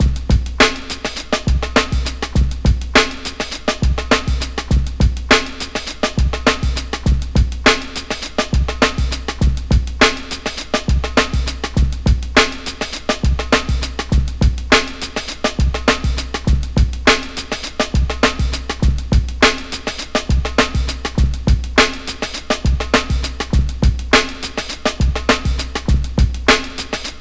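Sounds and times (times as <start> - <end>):
original drum breaks: 0.0 - 27.1.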